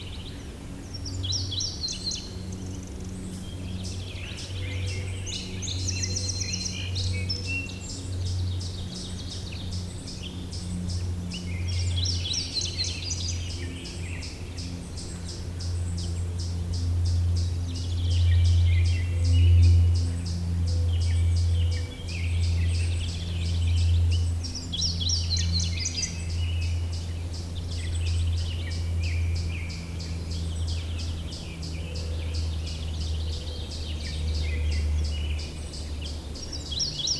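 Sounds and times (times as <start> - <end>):
songbirds singing: 0.0 - 37.1.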